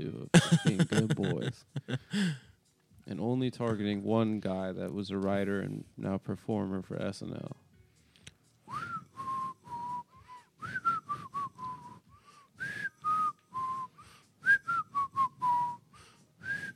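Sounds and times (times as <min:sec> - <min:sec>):
laughter: 0:00.4 - 0:02.3
speech: 0:03.1 - 0:07.6
person whistling a melodic tune: 0:08.7 - 0:16.7.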